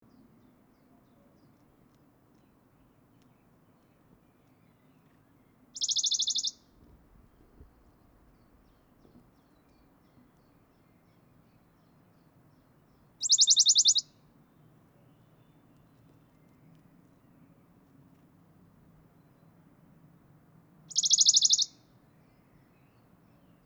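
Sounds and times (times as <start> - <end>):
Western Bonelli's warbler song trill: 5.8 - 6.6, 13.2 - 14.0, 20.9 - 21.7.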